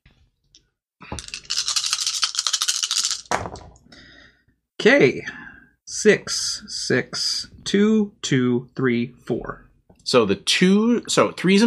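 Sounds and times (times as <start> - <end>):
dice being rolled: 1.2 - 3.8
speech: 4.8 - 11.6.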